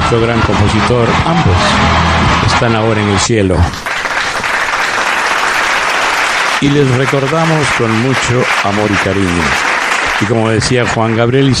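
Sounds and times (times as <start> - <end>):
speech: 0.1 - 3.9, 6.6 - 11.5
audience applause during a tribute to composers: 3.0 - 11.0.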